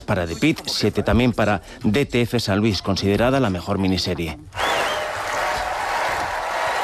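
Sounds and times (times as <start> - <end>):
speech: 0.1 - 4.6
large audience ovation at an awards ceremony: 4.6 - 6.8.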